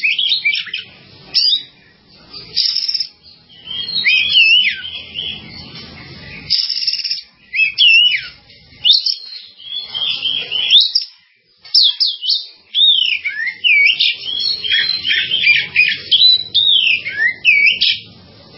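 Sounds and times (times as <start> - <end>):
bird song: 0.0 - 18.5.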